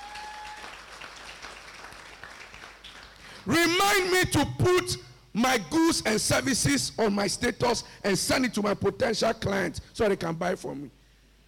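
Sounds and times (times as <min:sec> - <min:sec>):
audience clapping: 0:00.0 - 0:03.5
speech: 0:03.4 - 0:11.0.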